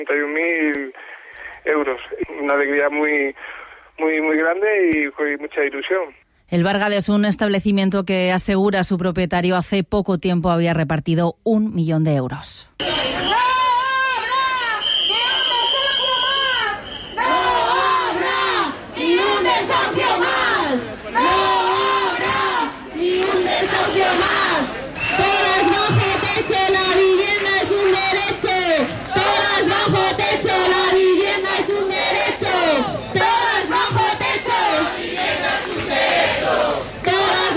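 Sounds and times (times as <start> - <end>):
speech: 0.0 - 13.2
protest crowd chanting slogans at a housing union rally in Cantabria: 12.8 - 15.4, 16.5 - 37.5.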